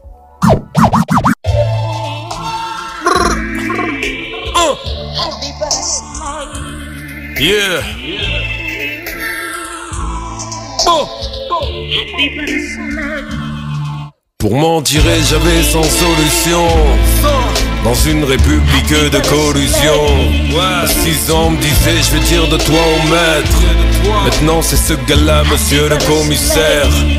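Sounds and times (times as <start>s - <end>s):
hip-hop beat from a played track: 0.4s - 2.0s, 3.0s - 13.8s, 14.9s - 27.1s
sweeping synth tones rising and falling: 3.0s - 4.5s
speech: 7.4s - 8.5s, 10.9s - 13.5s, 14.4s - 27.1s.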